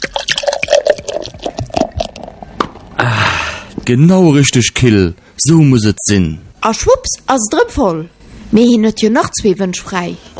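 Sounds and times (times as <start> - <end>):
beer pouring into a glass: 0.0 - 2.5
speech: 3.9 - 10.3.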